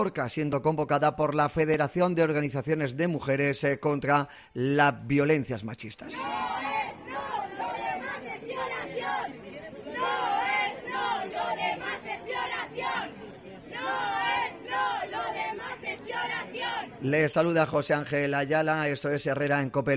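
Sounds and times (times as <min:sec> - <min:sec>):
speech: 0:00.0 - 0:06.6, 0:17.0 - 0:19.9
protest march crowd chanting slogans in streets: 0:06.0 - 0:17.2
busy murmur of chatter: 0:06.0 - 0:19.9.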